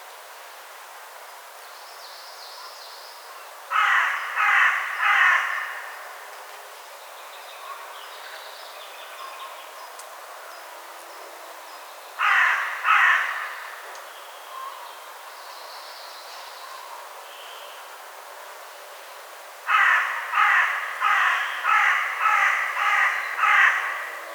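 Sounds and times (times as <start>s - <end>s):
Carrion crow Corvus corone cawing: 3.7s - 6.0s, 12.2s - 13.8s, 19.7s - 24.3s.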